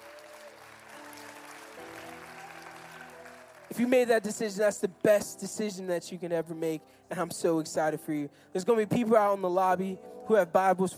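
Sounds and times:
crowd applause: 0.0 - 4.3
sustained keyboard or organ chords: 0.6 - 10.9
speech: 3.7 - 10.9.

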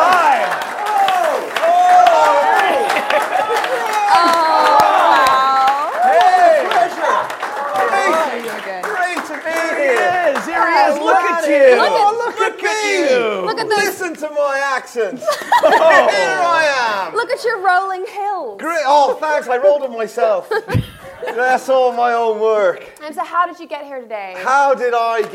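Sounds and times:
crowd cheering and applause welcoming a guest: 0.0 - 14.4
people chattering and chuckling: 2.6 - 22.0
speech: 17.3 - 25.3.

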